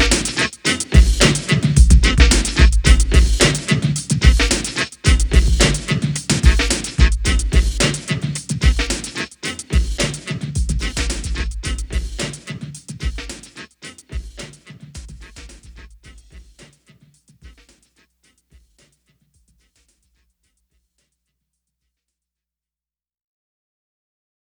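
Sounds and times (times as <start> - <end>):
instrumental music: 0.0 - 18.9.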